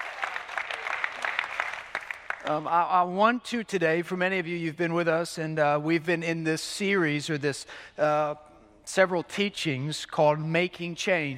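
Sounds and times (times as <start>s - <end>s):
audience clapping for newcomers: 0.0s - 2.7s
speech: 2.4s - 11.3s.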